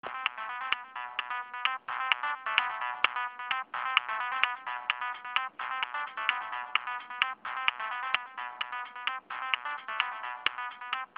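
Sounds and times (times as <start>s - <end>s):
techno music: 0.0s - 11.1s.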